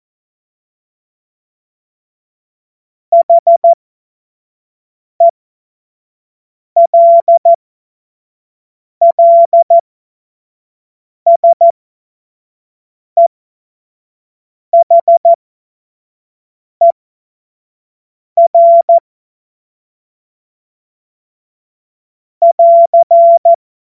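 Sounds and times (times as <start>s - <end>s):
CW Morse code beeps: 3.2s - 3.8s, 6.8s - 7.6s, 9.0s - 9.8s, 11.3s - 11.7s, 14.8s - 15.4s, 18.4s - 19.0s, 22.4s - 23.6s.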